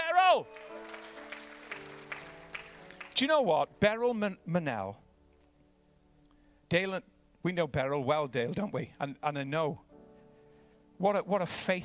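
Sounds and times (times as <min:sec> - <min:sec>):
speech: 0:00.3 - 0:00.8, 0:03.2 - 0:05.0, 0:06.7 - 0:09.8, 0:11.0 - 0:11.8
audience round of applause: 0:00.4 - 0:03.2.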